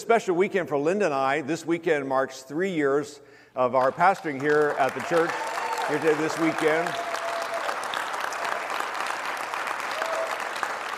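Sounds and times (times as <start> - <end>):
speech: 0.0 - 7.1
audience applause: 4.3 - 10.9.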